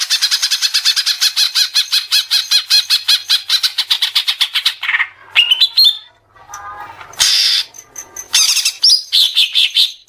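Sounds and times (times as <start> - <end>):
Oriental magpie-robin chirps and whistles: 0.1 - 6.1, 7.2 - 10.0.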